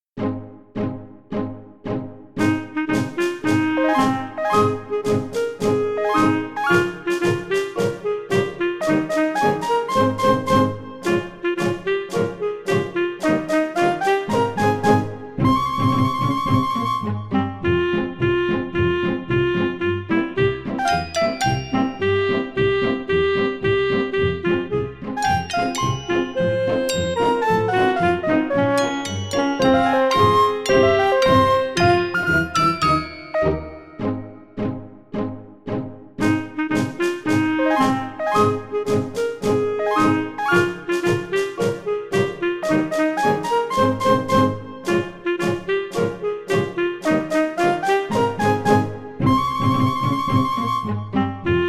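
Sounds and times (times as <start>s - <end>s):
instrumental backing track: 2.4s - 51.6s.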